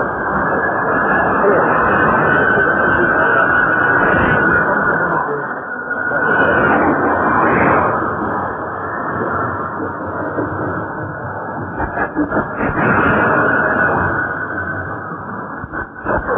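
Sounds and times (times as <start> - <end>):
shortwave radio broadcast on 3345 kHz: 0.0 - 16.3.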